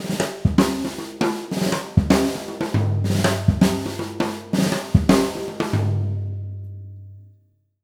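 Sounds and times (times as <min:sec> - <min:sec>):
breakbeat drums: 0:00.0 - 0:06.2.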